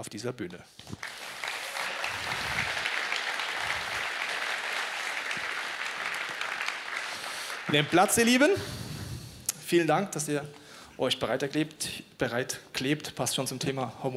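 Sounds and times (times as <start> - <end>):
speech: 0.0 - 1.4, 7.7 - 8.9, 9.7 - 14.1
thunderous audience applause: 1.0 - 8.6.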